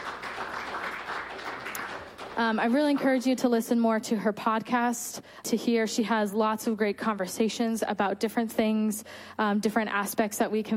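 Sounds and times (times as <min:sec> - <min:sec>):
applause: 0:00.0 - 0:03.2
speech: 0:02.4 - 0:10.7.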